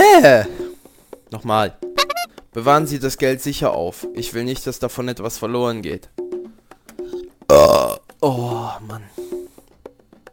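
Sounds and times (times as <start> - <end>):
speech: 0.2 - 0.5, 1.3 - 2.0, 2.6 - 6.2, 7.5 - 9.4
loud drawn-out burps: 7.5 - 8.2.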